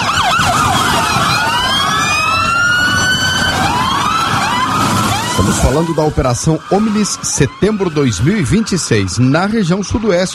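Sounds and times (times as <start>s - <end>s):
engines rumbling: 0.0s - 10.3s
police car sirens wailing: 0.0s - 10.3s
speech: 5.6s - 10.3s.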